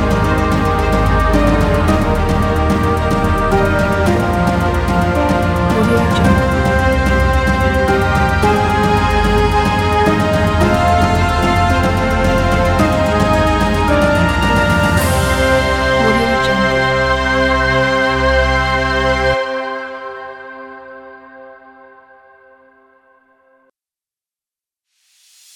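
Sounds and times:
epic victory music: 0.0s - 19.7s.

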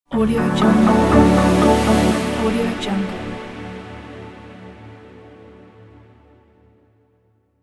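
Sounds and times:
modern logo intro music: 0.4s - 6.3s.

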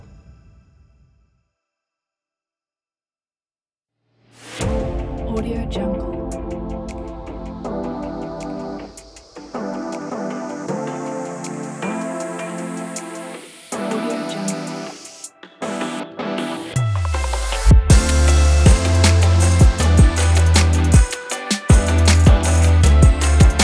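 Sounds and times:
smooth soul music: 4.8s - 23.6s.

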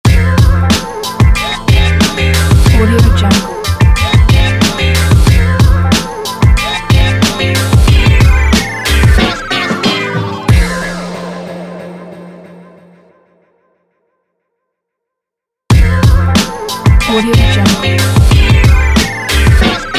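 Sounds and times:
laid back hip hop logo: 0.1s - 11.6s, 15.7s - 19.9s.

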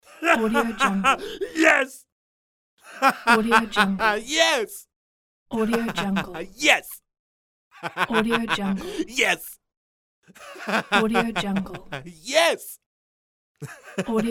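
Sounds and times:
man laughing: 0.1s - 2.0s, 2.8s - 4.7s, 5.6s - 7.0s, 7.8s - 9.6s, 10.3s - 12.7s, 13.6s - 14.3s
man speaking: 0.2s - 2.0s, 3.7s - 4.8s, 6.3s - 7.0s, 8.8s - 9.6s, 12.0s - 12.8s.

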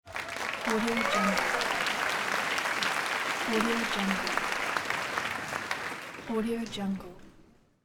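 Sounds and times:
applause: 0.0s - 7.2s.

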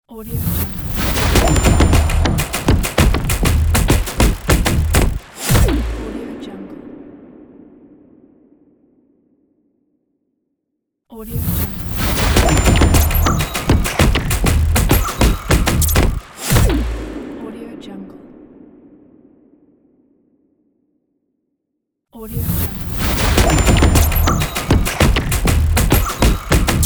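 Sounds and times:
stomp logo sting: 0.8s - 6.2s, 11.8s - 17.4s, 22.8s - 26.8s.

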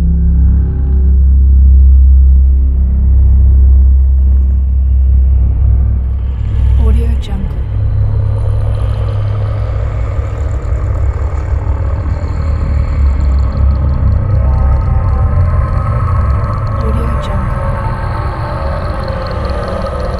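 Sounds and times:
atmospheric drone: 0.0s - 20.1s.

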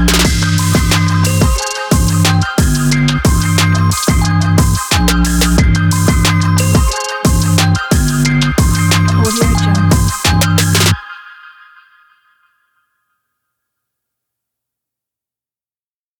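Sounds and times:
action trap music: 0.0s - 11.7s.

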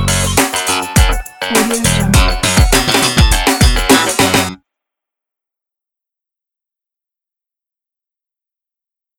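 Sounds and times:
summer funky disco music: 0.4s - 4.5s.

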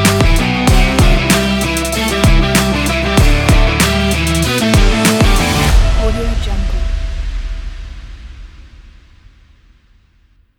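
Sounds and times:
action sport rock music: 0.0s - 7.2s.

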